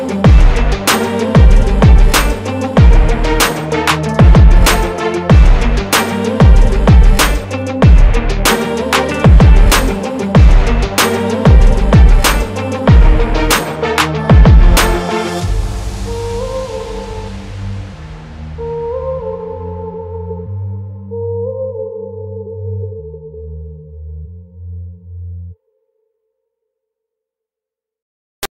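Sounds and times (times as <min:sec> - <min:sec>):
hard uplifting motivational rap beat: 0:00.0 - 0:15.6.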